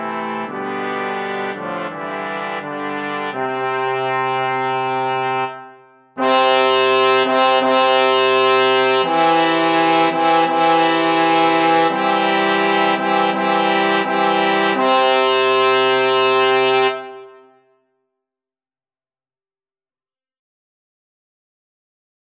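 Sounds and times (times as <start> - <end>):
slow fanfare for three: 0.0 - 17.7.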